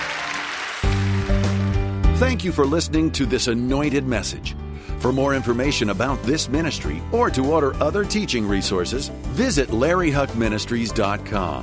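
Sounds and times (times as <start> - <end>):
audience clapping: 0.0 - 2.0
speech: 2.2 - 11.6.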